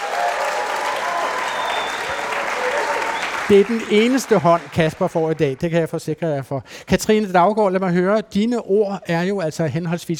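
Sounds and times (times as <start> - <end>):
audience applause: 0.0 - 6.0
speech: 3.5 - 10.1.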